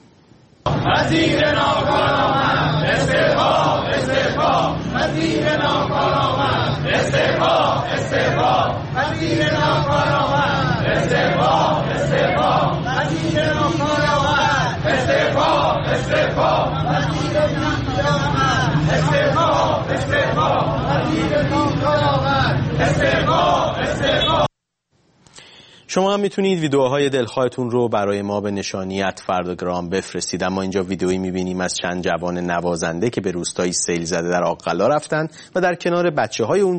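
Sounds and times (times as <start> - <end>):
crowd of teachers chanting in protest outside Education Ministry in Tehran: 0.7 - 24.5
speech: 1.0 - 2.2, 26.0 - 36.7.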